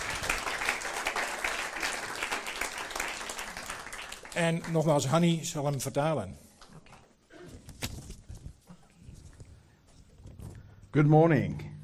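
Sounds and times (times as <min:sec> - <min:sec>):
audience applause welcoming a speaker: 0:00.0 - 0:05.2
speech: 0:04.4 - 0:06.4, 0:11.0 - 0:11.7.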